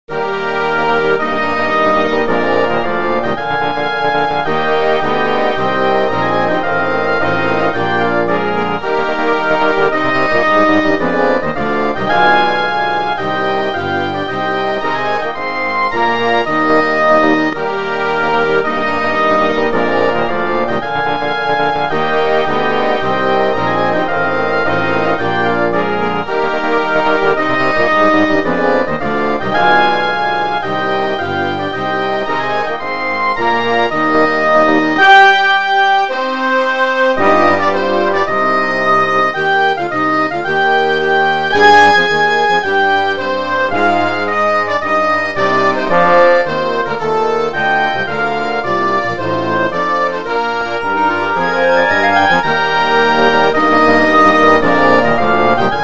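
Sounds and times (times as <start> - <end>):
march for orchestra: 0.1 - 55.8.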